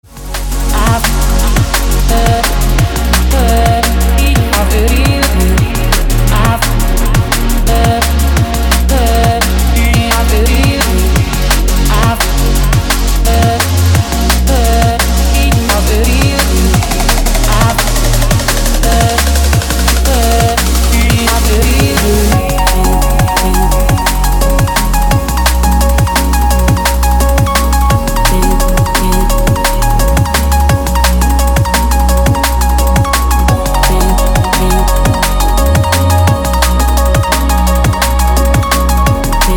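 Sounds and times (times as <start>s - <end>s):
drum and bass music: 0.0s - 39.5s.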